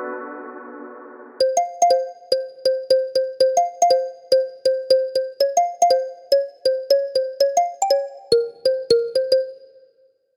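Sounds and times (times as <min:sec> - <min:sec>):
jazz music: 0:01.4 - 0:09.6.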